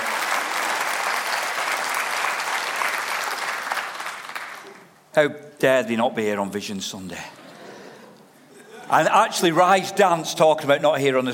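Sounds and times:
audience applause: 0:00.0 - 0:04.9
speech: 0:05.2 - 0:07.4, 0:08.9 - 0:11.3.

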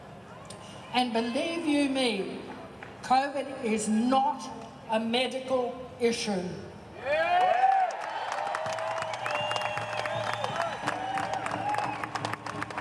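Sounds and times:
speech: 0:00.9 - 0:07.3
crowd applause at rally: 0:07.3 - 0:12.7.

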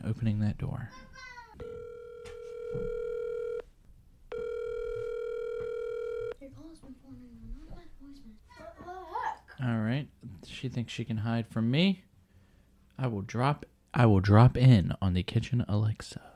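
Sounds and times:
speech: 0:00.1 - 0:01.3, 0:02.7 - 0:03.0, 0:08.0 - 0:12.1, 0:13.0 - 0:16.3
phone call dialing tone: 0:01.6 - 0:03.6, 0:04.3 - 0:06.4.

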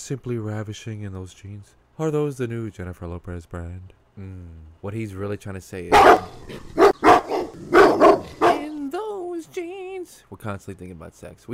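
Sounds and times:
speech: 0:00.0 - 0:06.8, 0:10.3 - 0:11.5
dog barking: 0:05.9 - 0:08.8.

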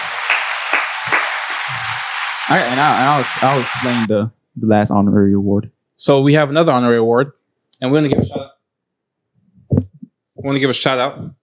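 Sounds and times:
crowd clapping: 0:00.0 - 0:04.1
speech: 0:02.5 - 0:08.5, 0:10.4 - 0:11.4.

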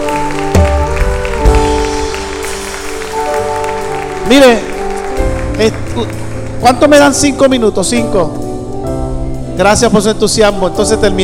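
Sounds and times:
audience applause: 0:00.0 - 0:07.1
speech: 0:04.3 - 0:04.7, 0:05.6 - 0:08.4, 0:09.6 - 0:11.2.

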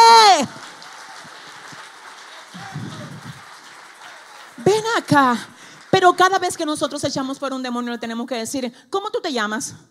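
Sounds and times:
audience applause: 0:00.0 - 0:07.0
speech: 0:05.0 - 0:09.8.

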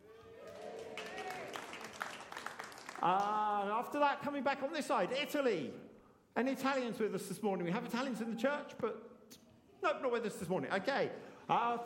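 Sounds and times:
audience cheering: 0:00.0 - 0:02.1
audience clapping: 0:00.0 - 0:03.6
speech: 0:03.0 - 0:05.8, 0:06.4 - 0:09.1, 0:09.8 - 0:11.8.

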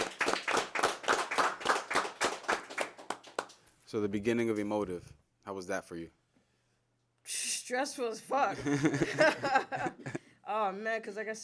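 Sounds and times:
hand clapping: 0:00.0 - 0:03.7
speech: 0:03.9 - 0:06.2, 0:07.3 - 0:11.4
laughter: 0:08.6 - 0:10.2.

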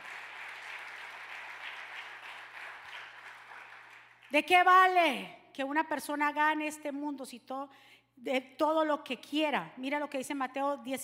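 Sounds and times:
audience applause: 0:00.0 - 0:04.3
speech: 0:04.3 - 0:11.0.

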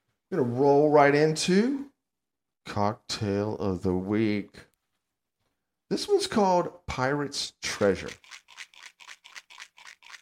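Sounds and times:
speech: 0:00.3 - 0:01.8, 0:02.6 - 0:04.7, 0:05.9 - 0:08.4
dice being shaken: 0:07.7 - 0:10.1.

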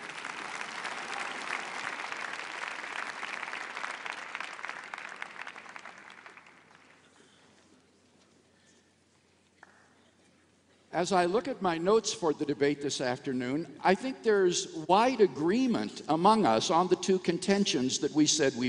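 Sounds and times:
debate audience clapping: 0:00.0 - 0:07.3
speech: 0:11.0 - 0:18.6.

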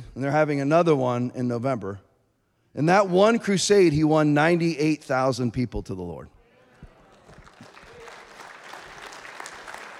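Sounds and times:
speech: 0:00.2 - 0:02.1, 0:02.8 - 0:06.4
audience clapping: 0:06.9 - 0:09.9.

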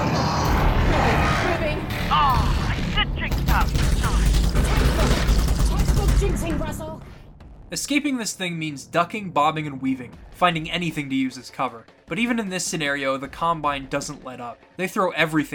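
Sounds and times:
Strider attacking in Half-Life Alyx, mechanical clattering and grinding: 0:00.0 - 0:06.8
deep rumbling of a Strider attack in Half-Life Alyx: 0:00.0 - 0:07.8
speech: 0:07.7 - 0:15.5.

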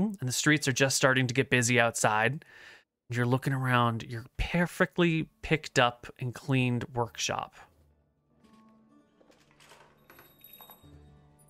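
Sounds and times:
speech: 0:00.1 - 0:07.7
doorbell ringing: 0:09.6 - 0:11.4.

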